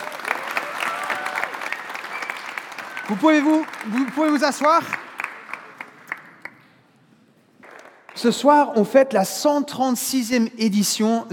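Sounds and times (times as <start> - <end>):
audience applauding: 0.0 - 6.7
speech: 3.1 - 5.0, 8.2 - 11.3.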